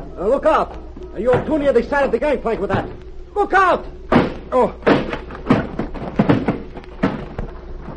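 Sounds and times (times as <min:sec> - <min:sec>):
speech: 0:00.2 - 0:05.1
heavy wooden packing case dropped and breaking open: 0:04.1 - 0:07.9.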